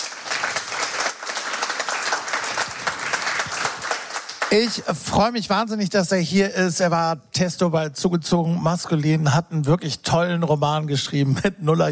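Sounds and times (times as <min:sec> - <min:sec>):
studio audience applause: 0:00.0 - 0:04.8
speech: 0:04.5 - 0:11.8.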